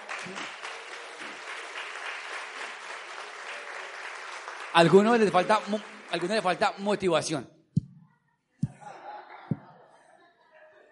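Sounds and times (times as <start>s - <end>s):
crowd applause: 0.0s - 6.9s
speech: 0.3s - 0.6s, 4.7s - 7.6s
laughter: 8.6s - 10.8s.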